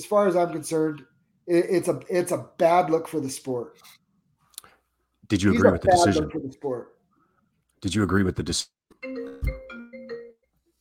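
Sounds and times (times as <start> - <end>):
speech: 0.0 - 4.0, 5.3 - 7.0, 7.8 - 8.8
phone ringtone during a live sports talk recording: 9.0 - 10.5.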